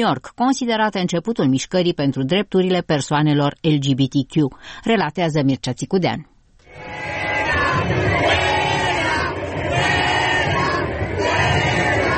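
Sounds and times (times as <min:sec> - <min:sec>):
speech: 0:00.0 - 0:07.1
crowd chanting fuera in Madrid: 0:06.7 - 0:12.1.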